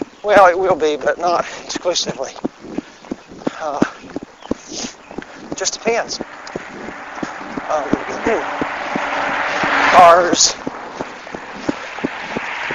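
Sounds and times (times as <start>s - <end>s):
speech: 0.2s - 2.5s, 3.6s - 4.0s, 5.6s - 6.3s, 7.7s - 8.7s, 10.0s - 10.6s
cars passing on a secondary road: 5.0s - 12.7s.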